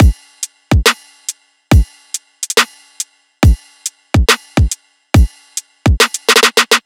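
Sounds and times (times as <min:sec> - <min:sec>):
riddim drum loop: 0:00.0 - 0:01.0, 0:03.4 - 0:03.6, 0:04.2 - 0:06.8.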